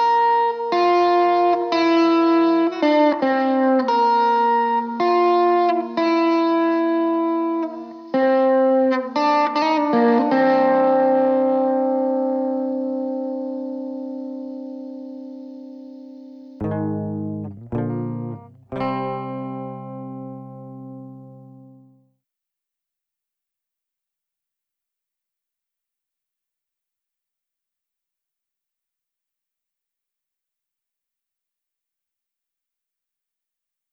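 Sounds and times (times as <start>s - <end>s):
guitar playing: 0.6s - 22.0s.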